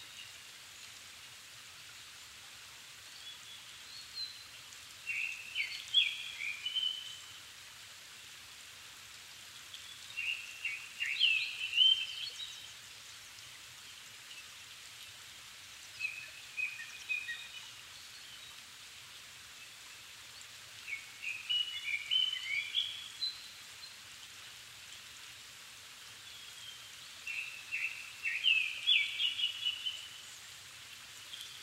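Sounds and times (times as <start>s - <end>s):
rain hiss: 0.0s - 31.6s
Japanese thrush song: 3.1s - 7.4s, 9.8s - 13.5s, 15.9s - 18.6s, 20.8s - 24.0s, 26.2s - 30.5s, 31.2s - 31.6s.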